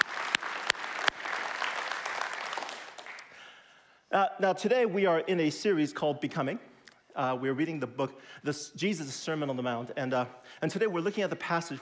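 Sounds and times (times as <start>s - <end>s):
audience applause: 0.0s - 3.4s
speech: 4.1s - 11.8s.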